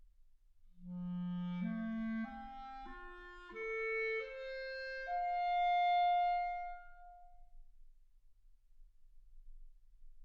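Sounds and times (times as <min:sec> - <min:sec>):
clarinet: 0:00.8 - 0:07.4.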